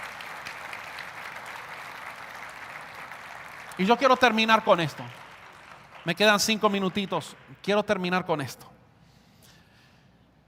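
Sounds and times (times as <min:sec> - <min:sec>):
applause: 0:00.0 - 0:08.2
speech: 0:03.8 - 0:05.2, 0:06.0 - 0:08.7.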